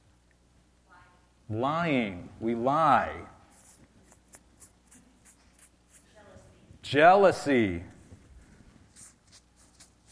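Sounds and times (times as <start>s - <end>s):
speech: 1.5s - 3.3s, 6.9s - 7.9s
marker strokes squeaking on a shirt: 3.5s - 6.2s, 8.9s - 10.0s.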